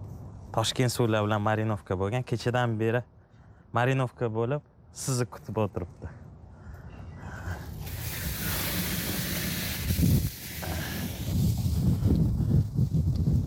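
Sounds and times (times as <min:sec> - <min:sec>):
speech: 0:00.6 - 0:03.1, 0:03.7 - 0:06.2
wind blowing outdoors on a windy day: 0:06.4 - 0:13.4.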